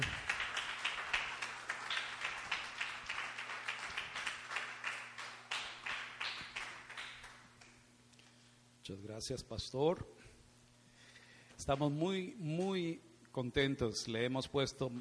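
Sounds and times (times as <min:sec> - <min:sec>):
audience applause: 0:00.0 - 0:07.5
speech: 0:08.9 - 0:10.2, 0:11.6 - 0:15.0.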